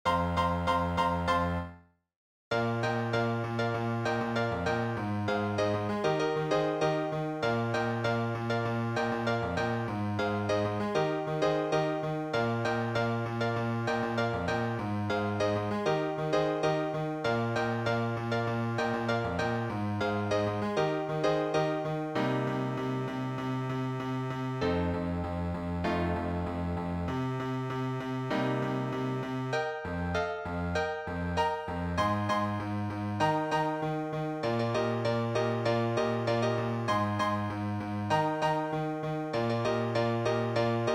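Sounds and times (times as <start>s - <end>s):
musical accompaniment: 0.1s - 1.8s, 2.5s - 40.9s.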